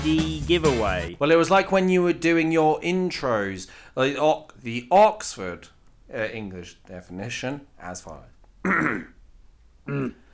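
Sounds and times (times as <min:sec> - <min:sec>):
speech: 0:00.0 - 0:09.2, 0:09.9 - 0:10.2
throat clearing sound effect: 0:08.6 - 0:09.2, 0:09.9 - 0:10.3.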